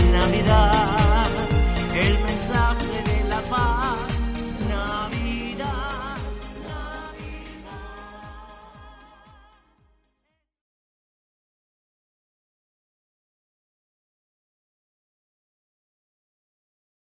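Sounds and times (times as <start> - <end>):
Christmas songs: 0.0 - 9.8.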